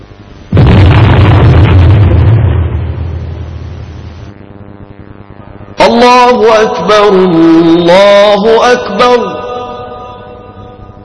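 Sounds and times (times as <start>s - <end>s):
low hum: 0.0s - 11.0s
Ramadan iftar cannon blast: 0.5s - 4.4s
speech: 6.4s - 9.4s.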